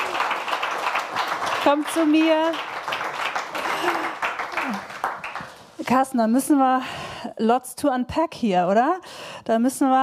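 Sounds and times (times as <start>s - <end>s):
audience applause as a guest walks to the front: 0.0s - 5.7s
speech: 1.6s - 2.7s, 3.8s - 4.9s, 5.8s - 10.0s.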